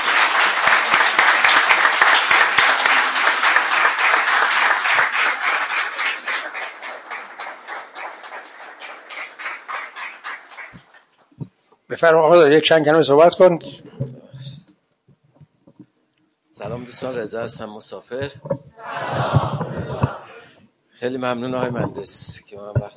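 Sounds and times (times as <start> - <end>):
audience applause greeting a champion at an award gathering: 0.0 - 11.3
speech: 12.0 - 14.1, 16.9 - 20.0, 21.0 - 22.9.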